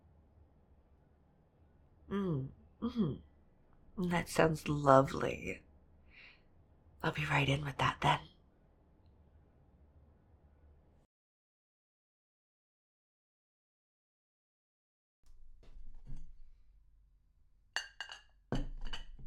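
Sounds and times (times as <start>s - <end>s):
speech: 2.4s - 3.3s, 4.0s - 5.6s, 7.0s - 8.3s
cups clinking while preparing hot drink: 17.8s - 19.2s.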